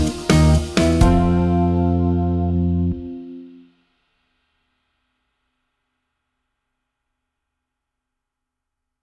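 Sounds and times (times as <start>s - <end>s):
jazz backing track: 0.0s - 3.6s.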